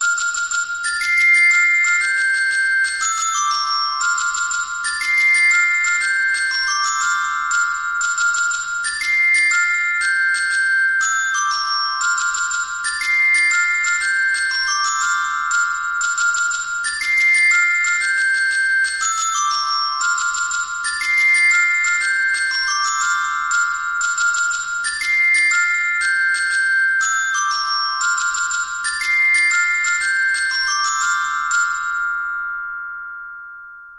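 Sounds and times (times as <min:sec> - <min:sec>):
glockenspiel nursery rhyme: 0:00.0 - 0:33.9.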